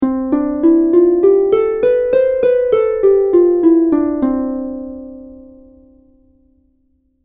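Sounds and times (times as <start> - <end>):
harp: 0.0 - 6.3.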